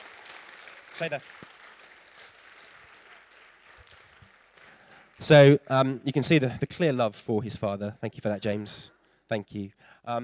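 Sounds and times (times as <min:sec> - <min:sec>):
audience applause: 0:00.0 - 0:05.6
speech: 0:01.0 - 0:01.5, 0:05.2 - 0:10.2.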